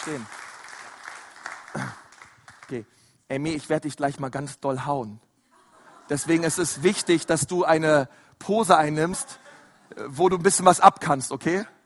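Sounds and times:
speech: 0.0 - 0.4, 2.7 - 5.3, 6.1 - 11.8
applause: 0.0 - 3.0
laughter: 5.5 - 7.5, 9.0 - 10.1.

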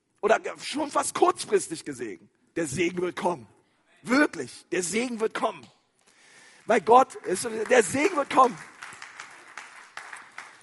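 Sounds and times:
speech: 0.2 - 5.8, 6.7 - 8.7
few claps from the audience: 6.4 - 10.6.

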